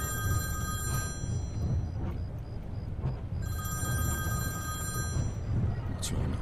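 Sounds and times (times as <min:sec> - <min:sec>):
telephone ringing: 0:00.0 - 0:01.6, 0:03.4 - 0:05.4
low steady hum: 0:00.0 - 0:06.4.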